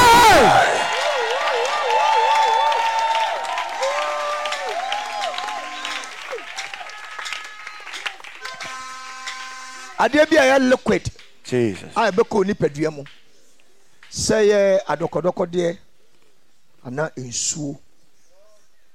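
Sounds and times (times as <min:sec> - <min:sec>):
audience clapping and cheering: 0:00.0 - 0:10.1
speech: 0:10.0 - 0:13.2, 0:14.1 - 0:15.8, 0:16.8 - 0:17.8.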